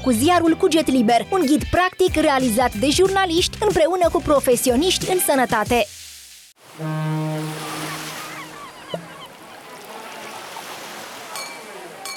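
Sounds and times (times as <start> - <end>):
speech: 0.0 - 6.0, 6.8 - 7.0
waves breaking on the shore: 6.6 - 12.1.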